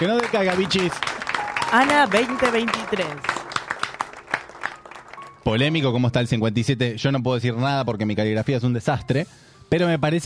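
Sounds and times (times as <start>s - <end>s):
speech: 0.0s - 3.3s, 5.5s - 10.2s
studio applause: 0.0s - 5.9s.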